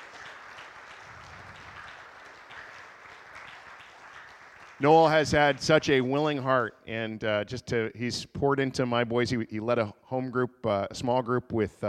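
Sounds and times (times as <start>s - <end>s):
sustained applause from a large crowd: 0.0s - 6.1s
speech: 4.8s - 11.8s.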